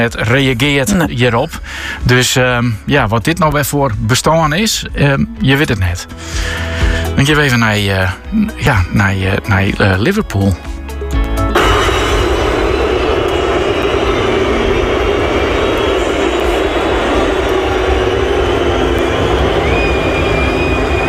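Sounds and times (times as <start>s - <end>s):
speech: 0.0s - 10.7s
stadium crowd whistling: 11.6s - 21.0s.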